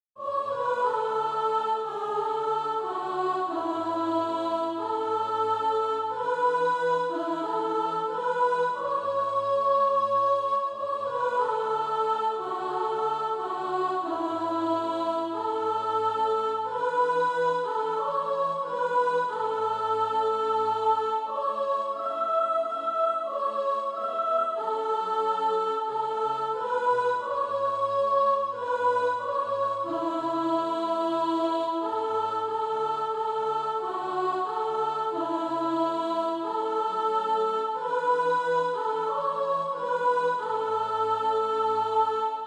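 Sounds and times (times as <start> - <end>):
soprano singing SATB practice music: 0.2 - 42.4.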